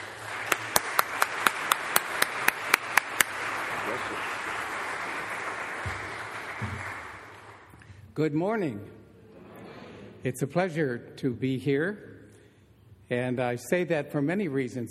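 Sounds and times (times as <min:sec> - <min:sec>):
church congregation clapping to welcome a speaker to the pulpit: 0:00.0 - 0:07.9
speech: 0:08.2 - 0:09.0, 0:10.2 - 0:12.1, 0:13.1 - 0:14.9.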